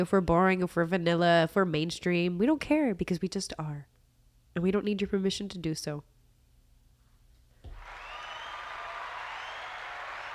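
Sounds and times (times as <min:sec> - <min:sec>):
speech: 0:00.0 - 0:03.9, 0:04.6 - 0:06.1
crowd cheering: 0:07.7 - 0:10.3.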